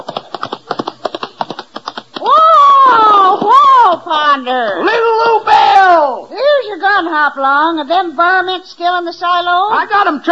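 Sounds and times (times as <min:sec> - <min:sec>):
horse hooves galloping: 0:00.0 - 0:04.1
speech: 0:04.2 - 0:06.2, 0:06.8 - 0:10.2.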